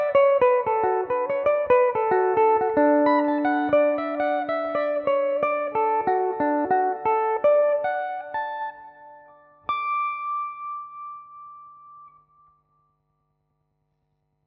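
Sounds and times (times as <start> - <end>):
Irish mandolin playing in D major: 0.0 - 8.4.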